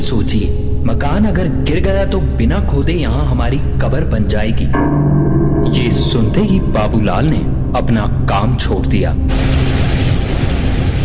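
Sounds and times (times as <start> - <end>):
speech: 0.1 - 9.7
thunder crack: 4.8 - 11.0.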